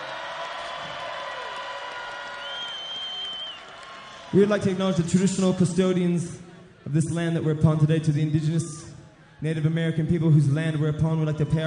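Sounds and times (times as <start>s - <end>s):
audience applause and cheering: 0.0s - 5.1s
speech: 4.3s - 11.6s.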